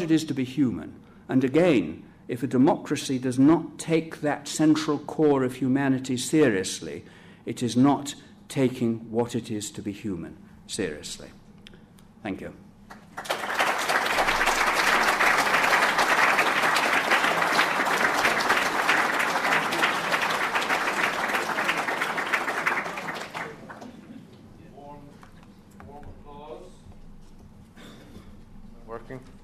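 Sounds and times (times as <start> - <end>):
speech: 0.0 - 11.4, 12.2 - 12.6
warm applause: 12.9 - 24.3.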